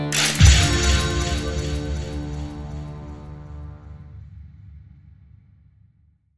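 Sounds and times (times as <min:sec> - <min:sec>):
victory sound: 0:00.1 - 0:03.4.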